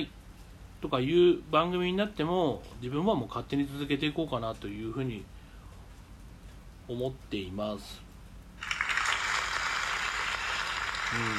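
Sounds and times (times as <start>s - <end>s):
speech: 0.8s - 5.3s, 6.9s - 8.0s, 11.1s - 11.3s
small applause: 8.6s - 11.3s.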